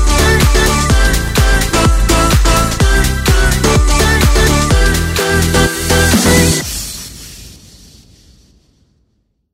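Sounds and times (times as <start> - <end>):
serial beats: 0.0 - 6.6.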